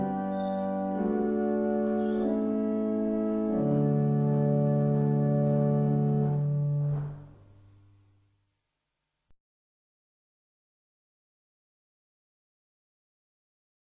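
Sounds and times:
barrel organs: 0:00.0 - 0:07.4.

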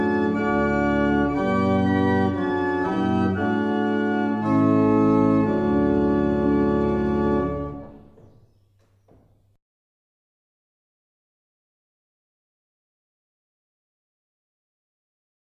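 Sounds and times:
barrel organs in Truro: 0:00.0 - 0:09.2.

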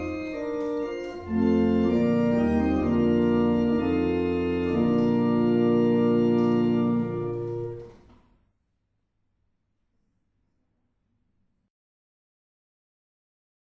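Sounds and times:
barrel organ: 0:00.0 - 0:08.0.

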